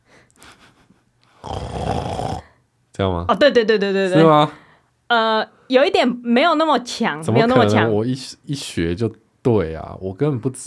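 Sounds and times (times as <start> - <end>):
person imitating restless snoring: 1.4 - 2.6
speech: 3.0 - 10.6.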